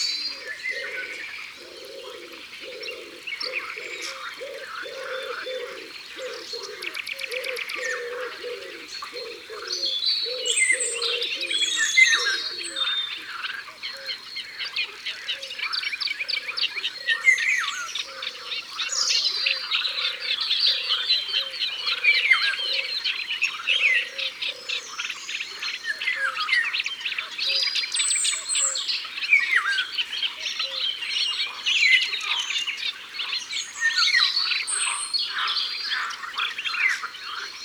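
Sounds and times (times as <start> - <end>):
wood pigeon cooing: 0.0 - 12.9, 19.4 - 23.0
chorus of birds chirping and warbling: 0.0 - 37.6.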